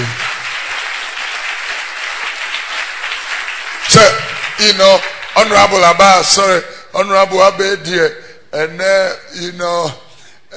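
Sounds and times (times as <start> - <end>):
audience clapping: 0.0 - 6.4
speech: 3.9 - 10.5.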